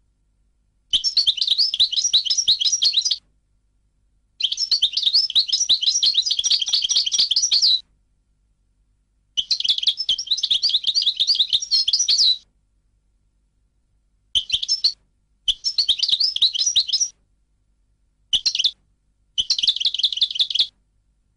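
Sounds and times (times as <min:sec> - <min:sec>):
European goldfinch song: 0:00.9 - 0:03.2, 0:04.4 - 0:07.8, 0:09.4 - 0:12.4, 0:14.4 - 0:17.1, 0:18.4 - 0:18.7, 0:19.4 - 0:20.7.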